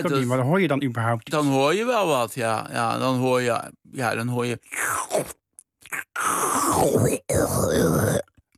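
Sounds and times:
speech: 0.0 - 8.3
voice imitating slurping wet peat ground: 4.6 - 8.4.

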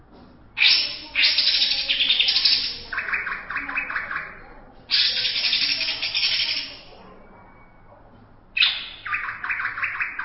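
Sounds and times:
greater green leafbird song: 0.6 - 6.8, 8.6 - 10.2.

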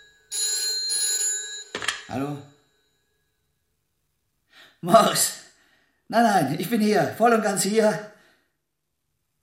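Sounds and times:
telephone ringing with electronic tone: 0.0 - 3.1
speech: 2.1 - 2.5, 4.8 - 5.5, 6.1 - 8.1.

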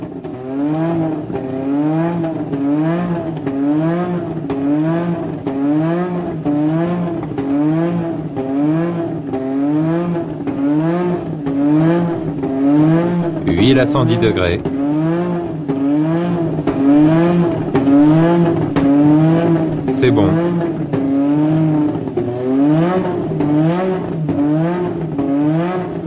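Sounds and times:
Formula 1 race car engine revving between 9000 and 10000 rpm: 0.4 - 26.0
speech: 13.7 - 14.8, 20.0 - 20.6.

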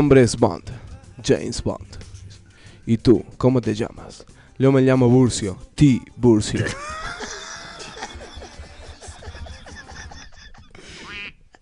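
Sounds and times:
speech: 0.0 - 2.1, 2.8 - 7.4
cackling, laugh-like squawks: 10.9 - 11.4
duck quacks from a pressed sound-effect button: 11.0 - 11.4.

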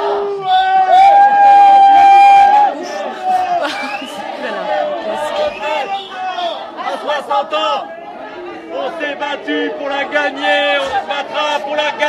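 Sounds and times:
crowd shouting: 0.0 - 12.0
laughter: 1.7 - 6.1
euphoric crowd singing a Creole maloya welcome chant in Saint-Pierre: 2.7 - 12.0.

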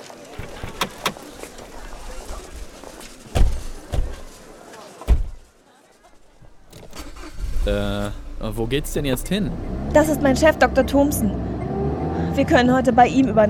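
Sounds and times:
car doors closing: 0.2 - 4.4, 5.0 - 5.5, 6.4 - 9.8
speech: 7.7 - 11.4, 12.4 - 13.4.

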